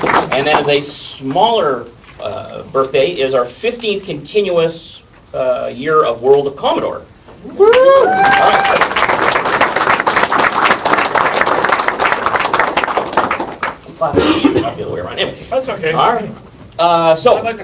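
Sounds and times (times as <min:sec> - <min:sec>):
clapping: 0:00.0 - 0:00.7, 0:07.8 - 0:13.8
speech: 0:00.0 - 0:08.8, 0:14.0 - 0:17.6.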